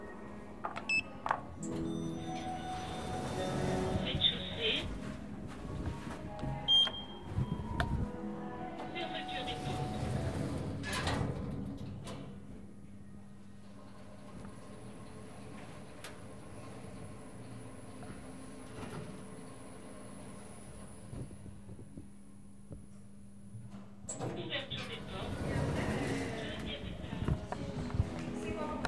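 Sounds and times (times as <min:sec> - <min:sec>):
elevator at ground floor: 0:00.7 - 0:28.8.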